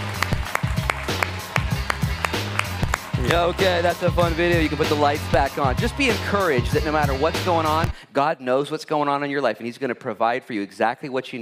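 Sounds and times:
audience applause: 0.0s - 5.6s
speech: 3.3s - 11.3s.

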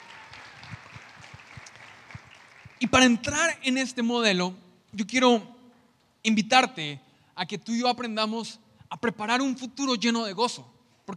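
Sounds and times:
church congregation applauding the Lord: 0.0s - 3.4s
speech: 2.8s - 5.5s, 6.2s - 11.1s.

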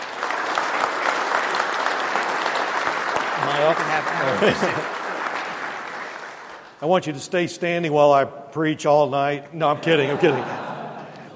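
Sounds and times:
round of applause: 0.0s - 7.1s
speech: 3.4s - 5.0s, 6.8s - 10.6s
laughter: 3.7s - 5.0s, 9.6s - 11.3s.

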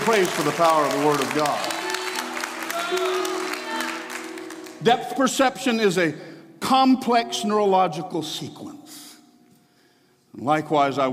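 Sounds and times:
audience clapping: 0.0s - 5.2s
speech: 0.1s - 1.8s, 2.9s - 3.4s, 4.8s - 8.9s, 10.4s - 11.1s.

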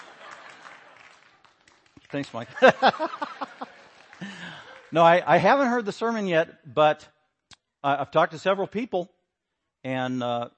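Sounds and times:
laughter: 0.0s - 1.1s, 2.2s - 5.2s
audience clapping: 0.0s - 5.8s
speech: 2.1s - 4.3s, 4.9s - 7.2s, 7.8s - 9.2s, 9.8s - 10.5s.

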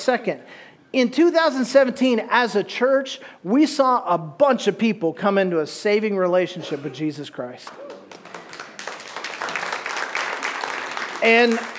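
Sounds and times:
speech: 0.0s - 8.0s, 11.2s - 11.7s
audience clapping: 7.7s - 11.7s.

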